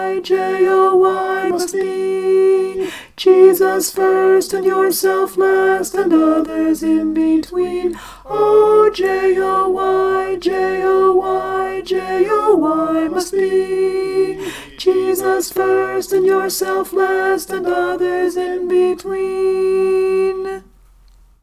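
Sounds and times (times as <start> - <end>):
Christmas alto: 0.0 - 20.8.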